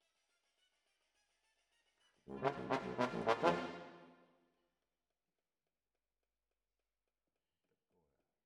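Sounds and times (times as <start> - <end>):
trombones: 2.3 - 4.1.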